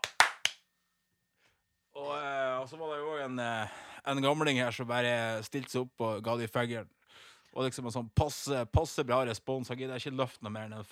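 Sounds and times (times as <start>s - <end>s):
sharp hand claps: 0.0s - 0.6s
speech: 2.6s - 10.8s.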